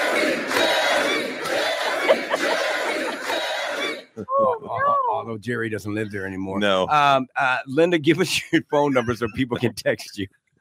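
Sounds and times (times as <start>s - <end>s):
large crowd chanting: 0.0s - 4.9s
laughter: 1.4s - 5.1s, 8.0s - 10.3s
speech: 5.3s - 10.4s.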